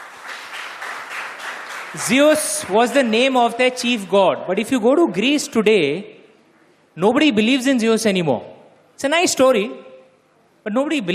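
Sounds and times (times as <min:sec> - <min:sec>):
audience applause: 0:00.0 - 0:03.4
speech: 0:01.9 - 0:06.2, 0:07.0 - 0:09.9, 0:10.6 - 0:11.1.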